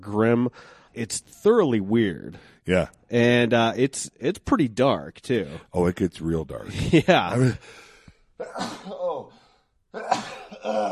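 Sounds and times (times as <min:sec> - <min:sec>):
speech: 0:00.0 - 0:07.8, 0:08.4 - 0:09.3
sneeze: 0:08.4 - 0:09.1.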